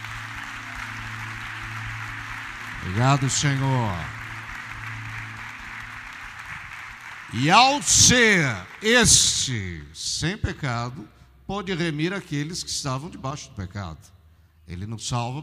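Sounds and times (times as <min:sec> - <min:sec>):
audience applause: 0:00.0 - 0:09.4
speech: 0:02.8 - 0:04.2, 0:07.3 - 0:15.4.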